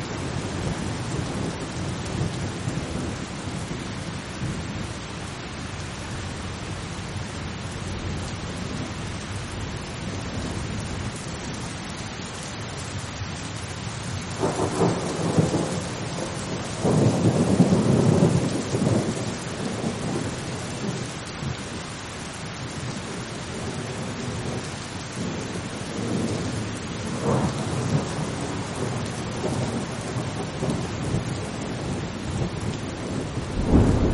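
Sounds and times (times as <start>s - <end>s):
steady rain in a thunderstorm: 0.0s - 34.1s
thunder rolling: 33.1s - 34.1s.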